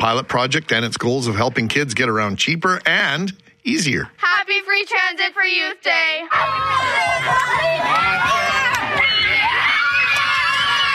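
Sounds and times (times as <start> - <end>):
speech: 0.0 - 9.1
crowd chatter at a free youth transit announcement: 6.2 - 10.9
Selkirk students cheering and screaming to welcome Premier Wab Kinew: 6.3 - 10.9.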